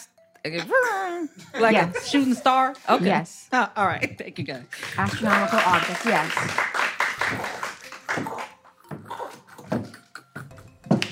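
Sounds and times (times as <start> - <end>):
speech: 0.4 - 6.7
audience clapping: 4.8 - 8.7.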